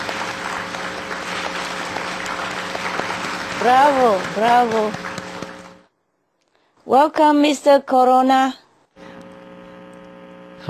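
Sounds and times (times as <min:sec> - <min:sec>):
audience applause: 0:00.0 - 0:05.9
speech: 0:03.6 - 0:05.2, 0:06.9 - 0:08.6.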